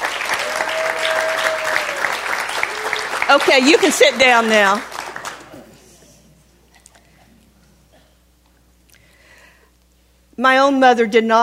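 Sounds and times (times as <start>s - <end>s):
audience applause: 0.0s - 5.8s
speech: 3.3s - 4.9s, 10.4s - 11.4s.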